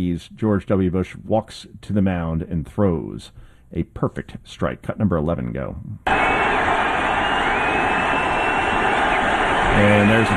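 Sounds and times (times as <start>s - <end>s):
speech: 0.0s - 6.6s, 9.8s - 10.3s
huge stadium crowd roaring and cheering: 6.1s - 10.3s.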